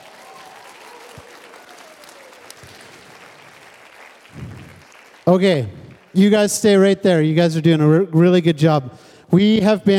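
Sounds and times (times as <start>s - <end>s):
faint voices and cheers: 0.0s - 3.1s
audience applause: 0.0s - 6.4s
speech: 5.3s - 9.9s.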